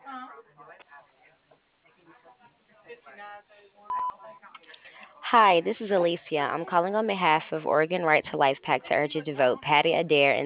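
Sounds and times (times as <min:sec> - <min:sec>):
speech: 0:03.2 - 0:10.4
voicemail beep: 0:03.9 - 0:04.2.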